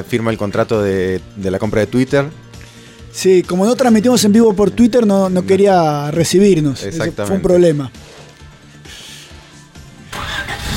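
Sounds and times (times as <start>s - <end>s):
speech: 0.0s - 2.4s, 3.1s - 8.1s
Renault 19 engine cranking and starting: 10.0s - 10.7s.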